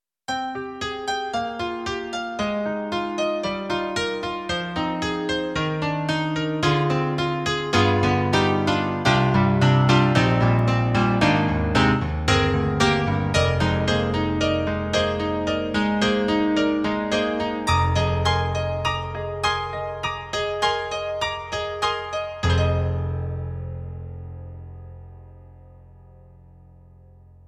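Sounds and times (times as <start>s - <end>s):
piano: 0.3s - 27.4s.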